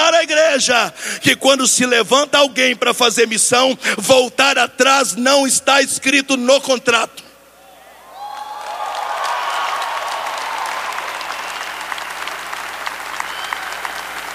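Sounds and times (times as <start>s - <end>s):
speech: 0.5s - 7.2s
audience applause: 8.2s - 14.3s.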